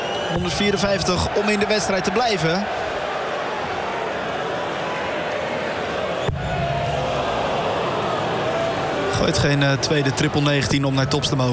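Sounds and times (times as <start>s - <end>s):
darts crowd cheering and roaring: 0.0s - 11.5s
speech: 0.3s - 3.0s, 9.2s - 11.5s.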